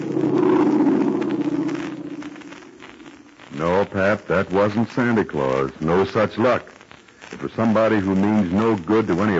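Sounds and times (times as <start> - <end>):
airplane flying: 0.0 - 3.0
speech: 3.6 - 6.8, 7.4 - 9.3.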